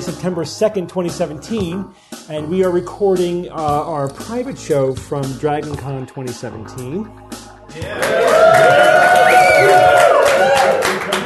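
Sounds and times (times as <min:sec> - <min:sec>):
speech: 0:00.0 - 0:09.9
live audience cheering at a DragonCon 2017 show recording: 0:07.8 - 0:11.2.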